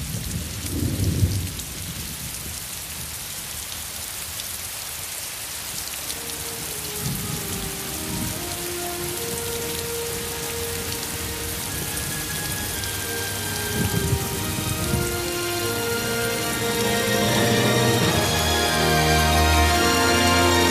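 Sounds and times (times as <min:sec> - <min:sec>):
gentle rain falling: 0:00.0 - 0:20.6
low rumbles: 0:11.8 - 0:20.6.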